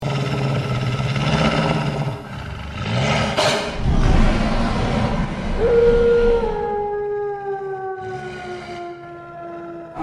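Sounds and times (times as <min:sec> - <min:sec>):
Cerberus monster growl: 0:00.0 - 0:10.0.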